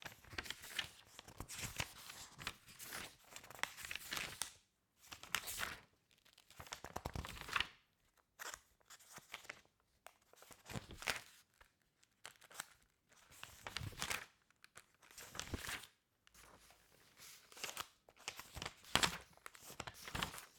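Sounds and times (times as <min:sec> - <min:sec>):
page turns: 0:00.0 - 0:04.5, 0:05.2 - 0:05.8, 0:06.6 - 0:07.7, 0:12.3 - 0:20.5.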